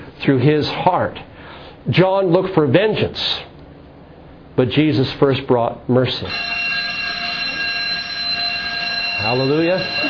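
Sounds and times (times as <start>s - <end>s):
speech: 0.2s - 3.5s, 4.6s - 6.6s, 9.2s - 10.0s
fire alarm high-pitched electronic tone during a drill: 6.3s - 10.0s.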